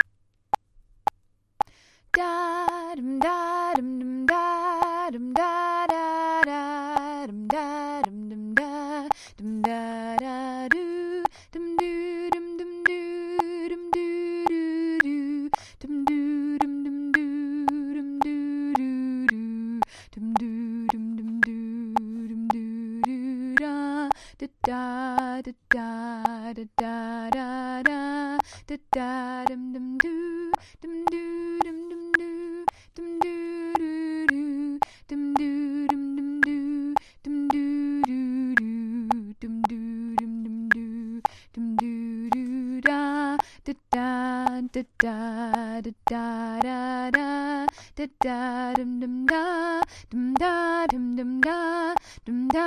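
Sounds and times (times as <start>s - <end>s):
tenor voice singing bottom part: 2.2s - 52.6s.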